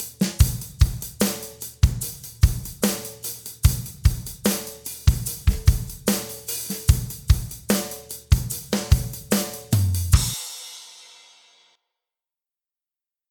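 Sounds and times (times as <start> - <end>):
drum kit beat at 74 BPM: 0.0 - 11.6.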